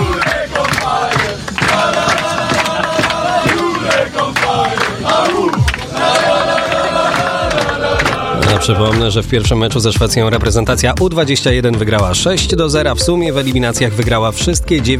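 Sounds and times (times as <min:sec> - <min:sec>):
footballers cheering and chanting, celebrating a victory: 0:00.0 - 0:09.4
speech: 0:08.7 - 0:14.9.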